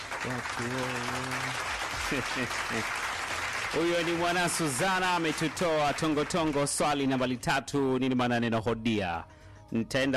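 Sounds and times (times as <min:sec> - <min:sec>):
group applause at a Swahili quiz show: 0:00.0 - 0:06.8
speech: 0:00.2 - 0:03.1, 0:03.7 - 0:10.1.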